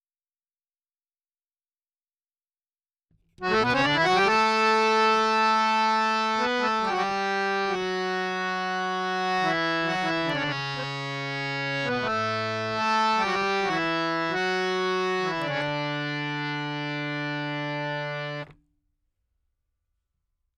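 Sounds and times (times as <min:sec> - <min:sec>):
harmonium: 0:03.4 - 0:18.5.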